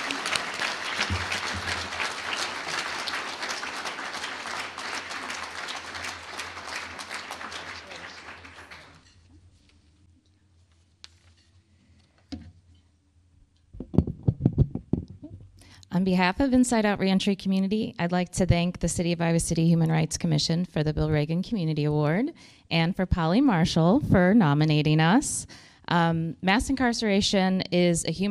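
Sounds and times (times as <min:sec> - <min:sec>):
audience applause: 0:00.0 - 0:09.1
speech: 0:16.0 - 0:28.2.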